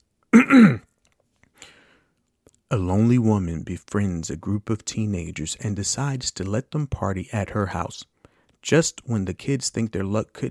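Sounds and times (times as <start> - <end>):
throat clearing: 0.4 - 0.9
speech: 0.5 - 0.8, 2.7 - 10.4.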